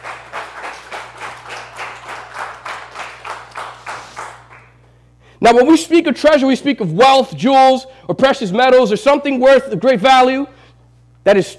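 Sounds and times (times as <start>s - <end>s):
crowd clapping in steady unified rhythm: 0.0s - 4.8s
speech: 5.4s - 10.5s, 11.2s - 11.5s.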